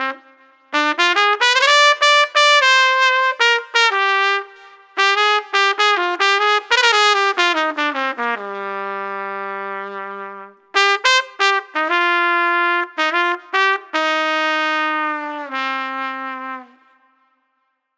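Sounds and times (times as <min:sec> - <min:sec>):
street trumpet playing: 0:00.0 - 0:17.4.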